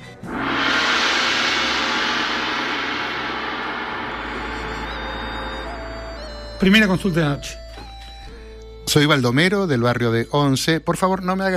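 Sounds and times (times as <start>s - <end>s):
low hum: 0.0s - 6.6s
gong struck: 0.0s - 7.1s
speech: 6.6s - 7.6s, 8.9s - 11.5s.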